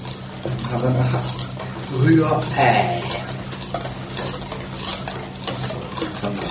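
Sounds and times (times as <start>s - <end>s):
stirring hot milk into egg mixture: 0.0s - 6.4s
speech: 0.4s - 3.1s.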